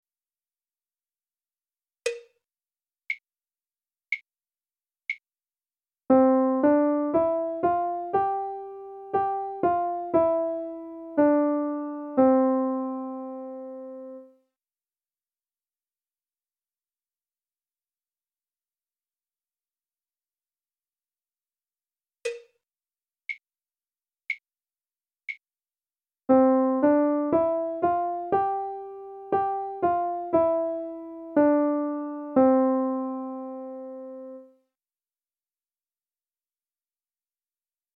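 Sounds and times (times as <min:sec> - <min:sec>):
melody: 0:06.1 - 0:14.3, 0:26.3 - 0:34.4.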